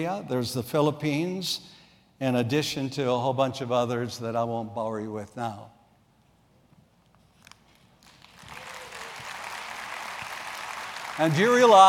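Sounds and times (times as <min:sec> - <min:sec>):
speech: 0:00.0 - 0:05.8, 0:11.2 - 0:11.8
crowd clapping: 0:08.0 - 0:11.8.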